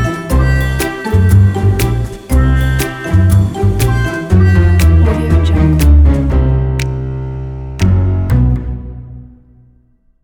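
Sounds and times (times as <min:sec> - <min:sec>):
comedy scene audio: 0:00.0 - 0:07.0.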